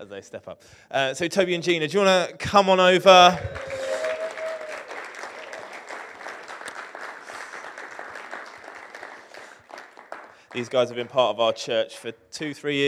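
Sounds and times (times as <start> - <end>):
speech: 0.0 - 3.8, 10.6 - 12.8
high cheer or whoop: 3.2 - 10.4
crowd clapping: 3.2 - 11.3.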